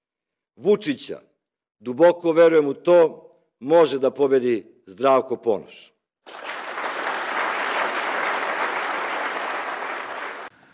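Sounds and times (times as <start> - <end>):
speech: 0.6 - 6.4
lukewarm audience applause: 6.2 - 10.6.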